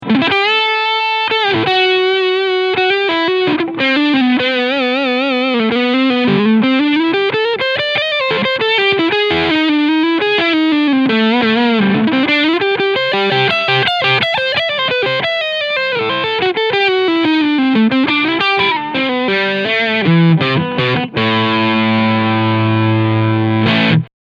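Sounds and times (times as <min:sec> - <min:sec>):
PRS SE McCarty 594 Vintage SB electric guitar lead on both humbuckers: 0:00.0 - 0:24.1.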